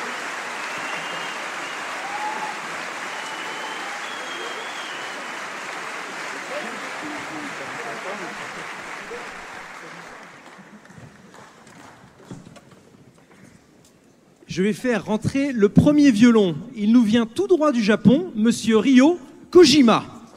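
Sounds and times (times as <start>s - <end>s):
crowd applause: 0.0s - 12.5s
speech: 8.0s - 10.2s, 14.6s - 20.1s.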